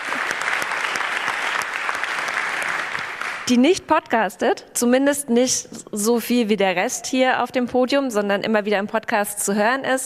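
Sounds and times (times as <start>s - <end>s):
audience applause: 0.0s - 3.5s
speech: 3.5s - 10.0s.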